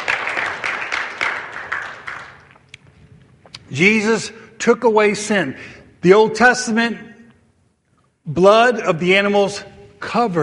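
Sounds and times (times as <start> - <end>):
audience clapping: 0.0 - 2.8
speech: 3.7 - 7.1, 8.3 - 10.4.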